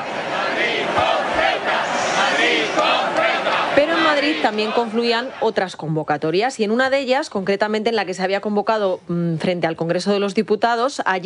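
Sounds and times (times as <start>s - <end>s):
crowd chanting protest slogan: 0.0s - 5.8s
speech: 4.1s - 11.2s.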